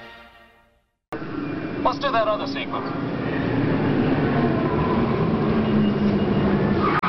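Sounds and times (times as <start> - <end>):
speech: 1.2 - 3.7
car braking without anti-lock brakes, tires locked skidding: 3.2 - 7.0.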